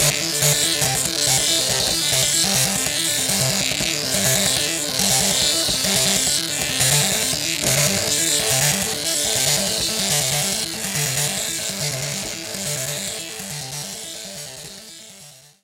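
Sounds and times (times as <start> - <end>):
printer arpeggio: 0.0 - 15.2.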